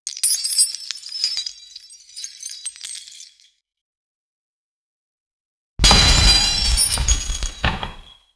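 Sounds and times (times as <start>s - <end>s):
treasure chest opening: 5.8s - 8.1s.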